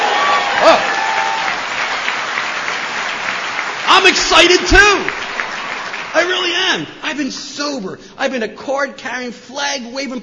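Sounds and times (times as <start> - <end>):
audience cheering and applauding: 0.0 - 7.3
speech: 4.0 - 5.2, 6.2 - 10.2.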